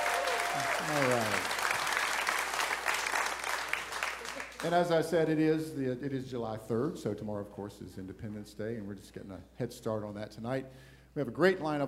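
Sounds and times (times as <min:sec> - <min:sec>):
studio audience clapping at a live Independence Day eve music show: 0:00.0 - 0:05.0
speech: 0:00.6 - 0:01.6, 0:04.6 - 0:11.8.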